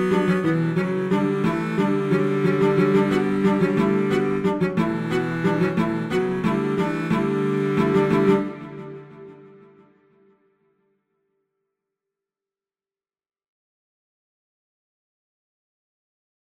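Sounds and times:
cello and strings dance music: 0:00.0 - 0:09.6.

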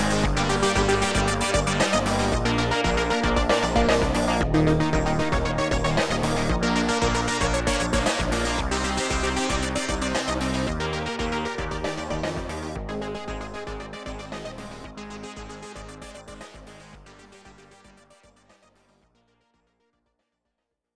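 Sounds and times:
zero delay filter sweep: 0:00.0 - 0:15.8.

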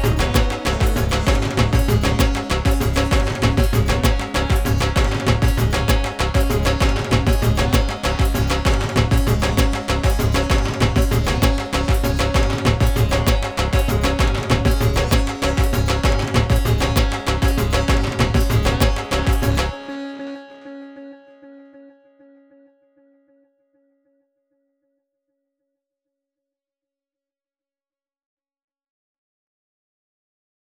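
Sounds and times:
dhol drum: 0:00.0 - 0:19.8.

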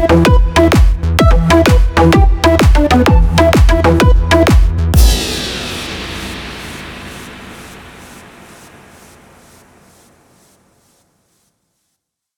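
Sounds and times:
kick drums: 0:00.0 - 0:08.6.

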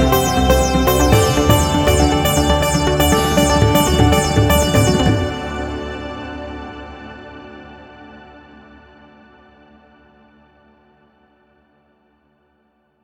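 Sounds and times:
electric sitar: 0:00.0 - 0:07.3.

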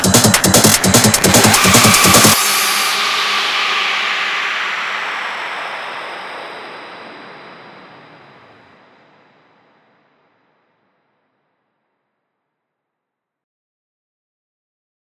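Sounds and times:
industrial techno: 0:00.0 - 0:05.6.

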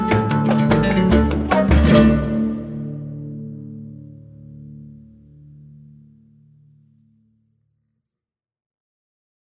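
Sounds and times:
Arabic oud melody: 0:00.0 - 0:06.0.

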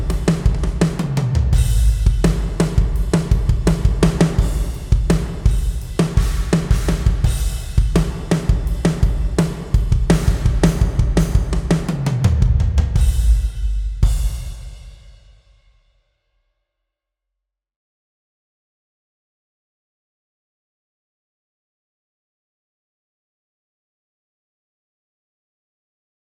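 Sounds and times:
gospel drum beat: 0:00.0 - 0:15.0.

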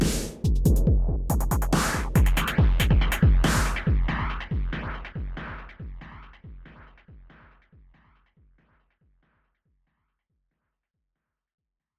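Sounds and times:
dubstep music: 0:00.0 - 0:05.7.

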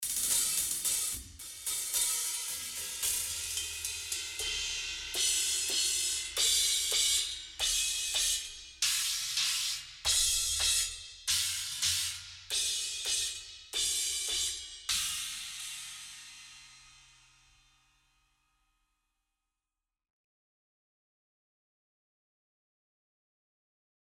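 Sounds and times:
cymbals: 0:00.0 - 0:17.9.

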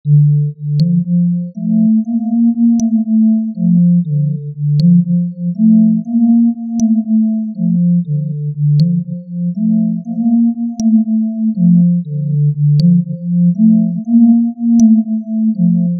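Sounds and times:
synth music: 0:00.1 - 0:15.9.

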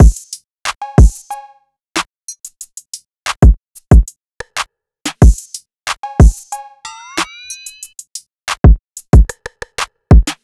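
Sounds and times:
drums: 0:00.0 - 0:01.4, 0:02.0 - 0:06.6, 0:07.2 - 0:10.4.

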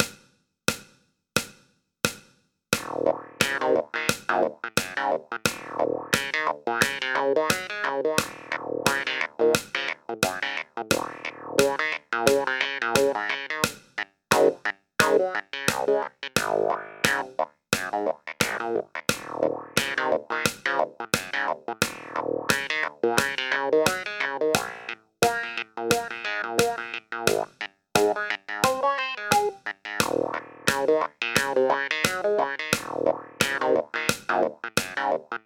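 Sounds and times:
clavinet solo: 0:02.8 - 0:35.4.

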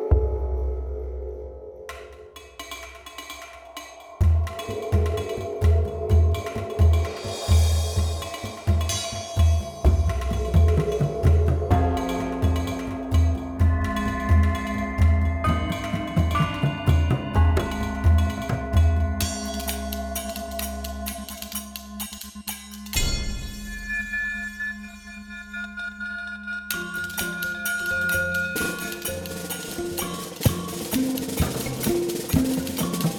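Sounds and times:
percussion sounds: 0:00.1 - 0:33.1.

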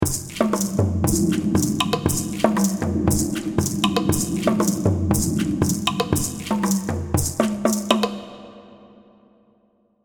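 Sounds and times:
percussion: 0:00.0 - 0:09.1.

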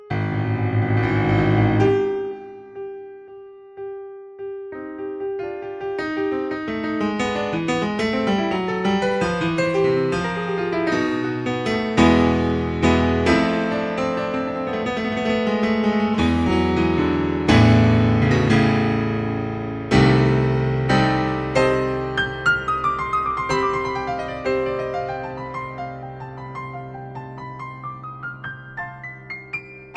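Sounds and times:
grand piano improvisation: 0:00.0 - 0:29.9.

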